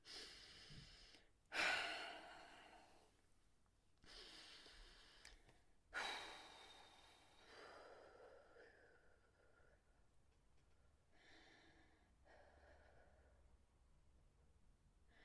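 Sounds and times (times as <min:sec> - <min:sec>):
slow deep breaths: 0:00.0 - 0:03.2, 0:04.0 - 0:10.0, 0:11.1 - 0:13.8, 0:15.0 - 0:15.2.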